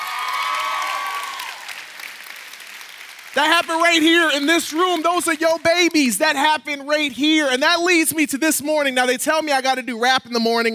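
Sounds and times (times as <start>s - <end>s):
whoop or whistle: 0.0s - 1.7s
audience applause: 0.0s - 6.0s
speech: 3.4s - 10.7s.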